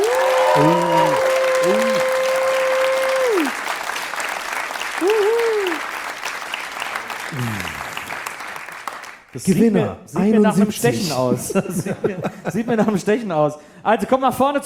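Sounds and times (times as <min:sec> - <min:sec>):
audience applause: 0:00.0 - 0:09.5
speech: 0:00.6 - 0:00.8, 0:09.4 - 0:14.6.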